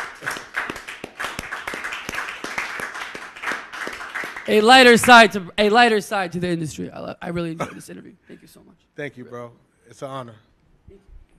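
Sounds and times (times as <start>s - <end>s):
clapping: 0.0s - 5.4s
speech: 4.5s - 11.1s.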